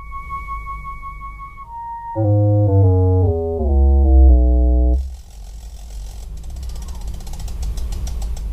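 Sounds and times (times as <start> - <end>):
buzzy chord-like tones from a Light Sound Project device as a cover slides over its light sensor: 2.2 - 5.1.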